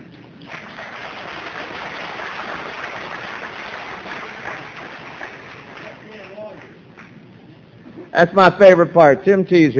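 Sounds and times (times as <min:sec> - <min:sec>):
audience clapping: 0:00.0 - 0:07.4
speech: 0:08.2 - 0:09.7.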